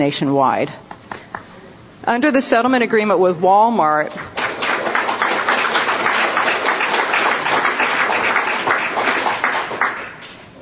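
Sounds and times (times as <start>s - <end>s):
speech: 0.0s - 0.9s, 2.1s - 4.4s
applause from an audience in a room: 4.2s - 10.3s.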